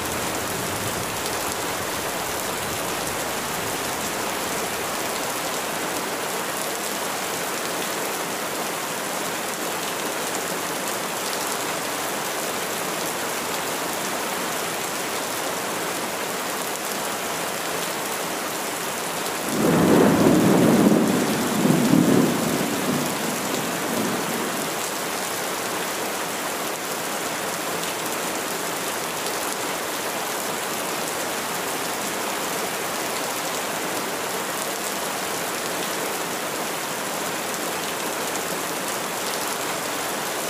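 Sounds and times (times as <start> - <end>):
steady rain: 0.0 - 40.4
thunder rumbling: 19.6 - 24.6.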